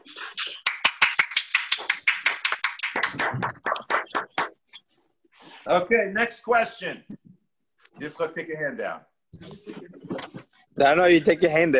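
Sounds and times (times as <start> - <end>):
audience applause: 0.1 - 4.5
speech: 5.7 - 7.2, 8.0 - 9.8, 10.8 - 11.7.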